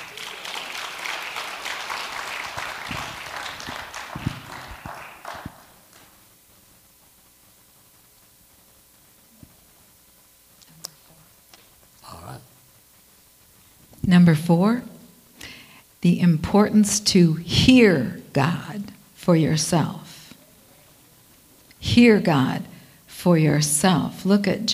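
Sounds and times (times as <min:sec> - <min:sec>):
audience clapping: 0:00.0 - 0:06.2
speech: 0:14.1 - 0:14.9, 0:16.1 - 0:20.0, 0:22.0 - 0:24.7.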